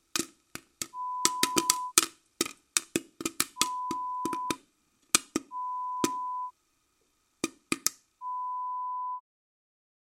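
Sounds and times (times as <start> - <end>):
popcorn popping: 0.0 - 6.3, 7.4 - 8.1.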